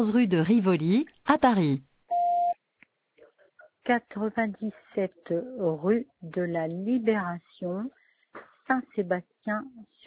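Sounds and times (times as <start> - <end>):
speech: 0.0 - 1.9, 3.9 - 8.0, 8.7 - 10.0
automated phone system beep: 2.1 - 2.6.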